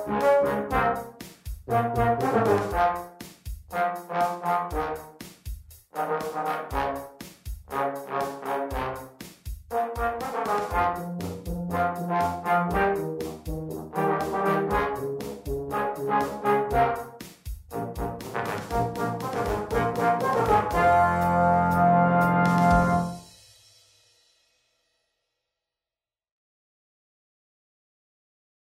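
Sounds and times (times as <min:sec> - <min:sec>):
brass quintet playing: 0:00.0 - 0:05.2, 0:05.9 - 0:23.2.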